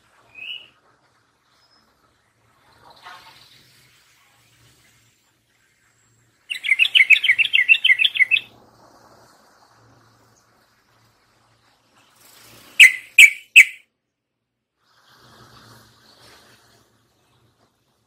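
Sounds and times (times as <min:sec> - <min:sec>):
yellow-vented bulbul song: 0:06.5 - 0:08.5, 0:12.8 - 0:13.8.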